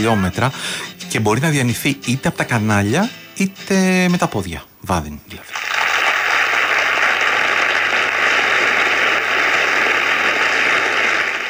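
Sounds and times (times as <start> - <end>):
speech: 0.0 - 5.6
crowd applause: 5.5 - 11.4.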